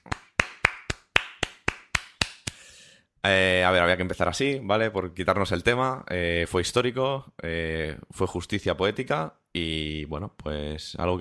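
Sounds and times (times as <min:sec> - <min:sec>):
applause: 0:00.0 - 0:02.6
speech: 0:03.2 - 0:11.1.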